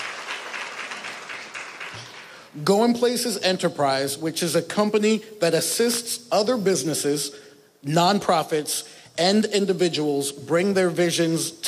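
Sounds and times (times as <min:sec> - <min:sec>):
audience clapping: 0:00.0 - 0:02.5
speech: 0:02.0 - 0:11.6.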